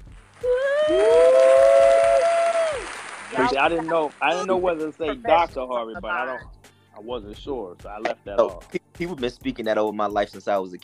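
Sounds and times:
audience clapping to welcome a guest: 0.0 - 5.2
speech: 3.6 - 10.8.

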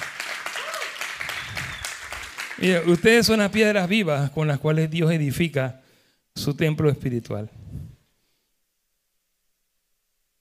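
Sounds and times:
audience applause: 0.0 - 3.4
speech: 2.6 - 5.8, 6.4 - 7.6.

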